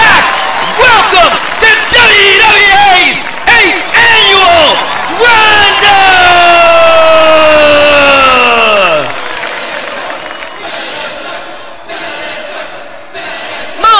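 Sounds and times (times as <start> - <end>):
wrestling arena crowd roaring: 0.0 - 13.9.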